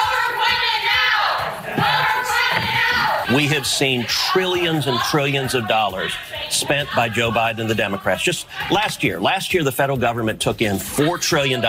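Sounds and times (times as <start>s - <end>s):
protesters in the audience chanting about climate change: 0.0s - 9.3s
speech: 3.4s - 11.6s.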